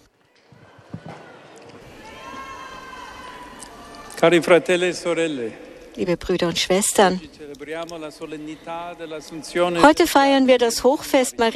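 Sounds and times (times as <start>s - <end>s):
sustained cheering voices: 0.0s - 5.1s
speech: 4.2s - 11.5s.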